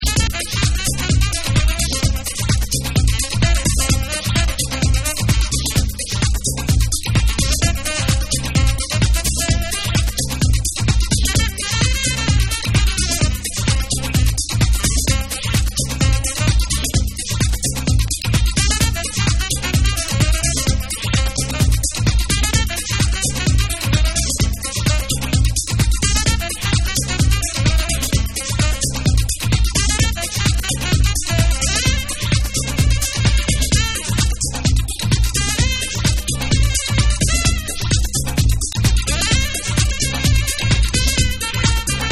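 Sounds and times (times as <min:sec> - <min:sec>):
jungle jazz music: 0:00.0 - 0:42.1.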